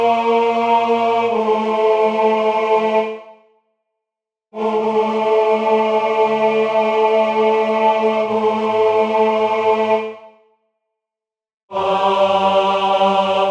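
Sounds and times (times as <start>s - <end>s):
tenor singing: 0.0s - 3.3s, 4.6s - 10.2s, 11.7s - 13.4s.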